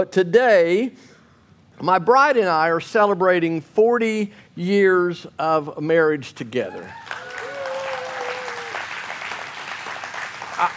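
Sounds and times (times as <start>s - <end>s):
speech: 0.0s - 1.1s, 1.8s - 7.1s
crowd applauding: 6.9s - 10.7s.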